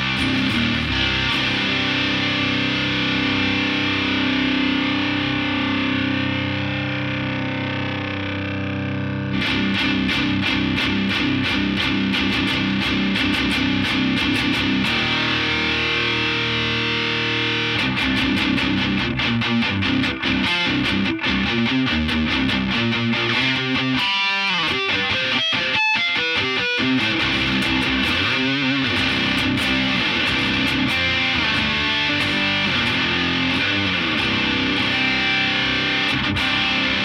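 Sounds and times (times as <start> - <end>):
loud driven electric guitar through boost pedal and amp: 0.0 - 37.0.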